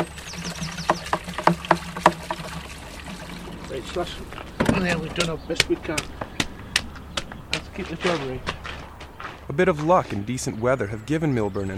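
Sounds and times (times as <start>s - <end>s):
disinfectant poured from a green watering can onto shoes: 0.0s - 4.6s
speech: 3.8s - 6.2s, 7.8s - 8.6s, 9.5s - 11.7s.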